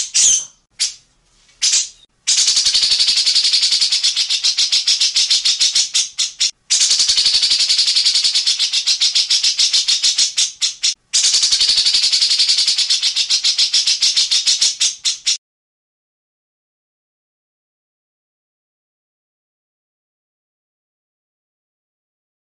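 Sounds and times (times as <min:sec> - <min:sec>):
grey-cheeked bulbul harsh rattling song: 0:01.6 - 0:15.4.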